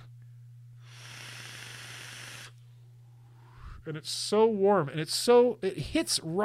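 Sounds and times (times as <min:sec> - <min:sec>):
low electrical hum: 0:00.0 - 0:06.4
vaporizer hissing as vapor is drawn: 0:00.8 - 0:03.9
speech: 0:03.8 - 0:06.4.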